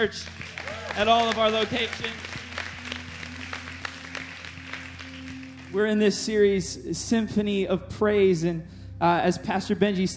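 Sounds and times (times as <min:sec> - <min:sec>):
speech: 0:00.0 - 0:03.0, 0:05.7 - 0:10.1
church congregation applauding: 0:00.0 - 0:06.0.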